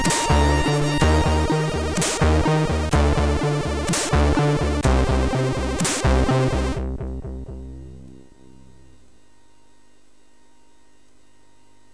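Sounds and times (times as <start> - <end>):
chiptune music on a MOS6581R3 SID chip: 0.0 - 9.0.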